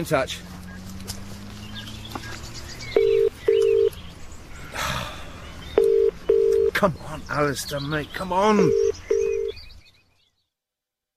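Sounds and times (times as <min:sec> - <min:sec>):
speech: 0:00.0 - 0:00.6, 0:06.8 - 0:08.9
faint birdsong: 0:00.0 - 0:10.6
touch-tone beeps from a phone keypad: 0:03.0 - 0:03.9, 0:05.8 - 0:06.8, 0:08.6 - 0:09.6.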